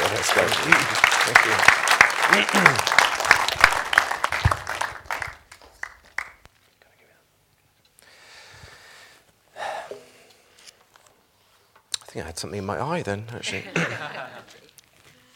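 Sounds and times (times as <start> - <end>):
laughter: 0.0 - 1.6, 2.3 - 2.9, 13.4 - 14.7
crowd applause: 0.0 - 6.4
speech: 0.2 - 3.0, 12.2 - 14.4
soft breathy noise: 8.0 - 10.6.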